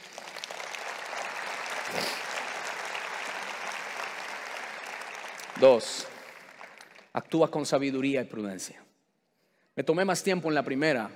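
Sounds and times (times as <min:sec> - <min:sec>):
audience applause: 0:00.0 - 0:07.4
speech: 0:05.6 - 0:06.1, 0:07.2 - 0:08.8, 0:09.8 - 0:11.1.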